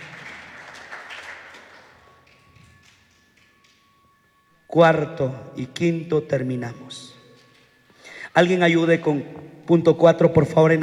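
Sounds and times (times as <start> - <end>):
crowd applauding: 0.0 - 3.4
speech: 4.7 - 7.1, 8.4 - 10.8.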